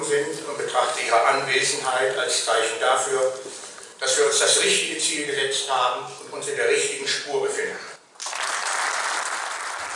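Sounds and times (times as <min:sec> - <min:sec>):
speech: 0:00.1 - 0:07.9
audience applause: 0:08.2 - 0:09.9.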